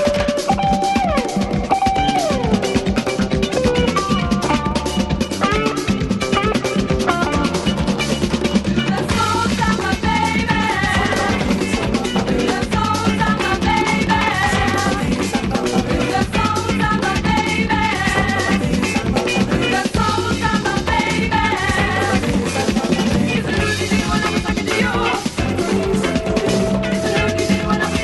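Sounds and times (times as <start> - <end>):
samba music: 0.0 - 28.0.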